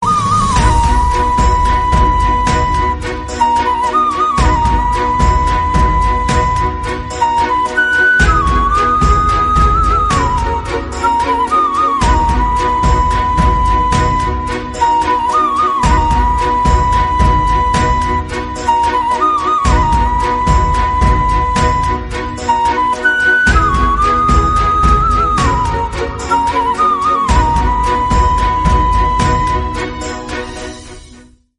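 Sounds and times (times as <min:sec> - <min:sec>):
flute ringtone: 0:00.0 - 0:31.1.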